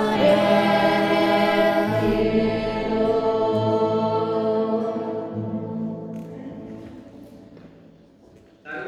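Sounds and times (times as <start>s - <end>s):
choir voices singing a Sanctus: 0.0s - 6.4s.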